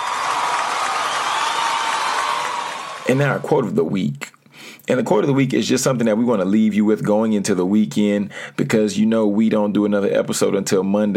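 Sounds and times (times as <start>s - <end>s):
audience round of applause: 0.0s - 3.6s
speech: 3.1s - 4.3s, 4.9s - 11.1s.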